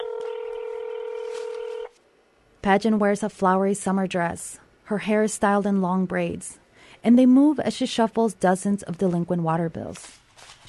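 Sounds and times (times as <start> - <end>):
telephone keypad dialing tones: 0.0 - 2.0
speech: 2.6 - 10.6.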